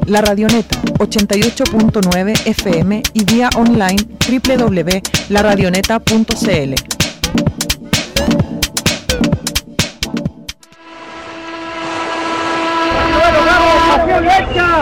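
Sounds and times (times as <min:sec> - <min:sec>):
sharp rhythmic knocking: 0:00.0 - 0:10.8
speech: 0:00.1 - 0:07.4
passenger launch engine starting up and revving: 0:10.7 - 0:13.8.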